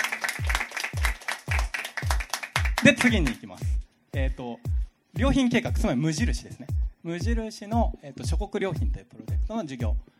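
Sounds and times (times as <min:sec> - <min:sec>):
audience clapping: 0:00.0 - 0:03.8
speech: 0:02.8 - 0:10.1.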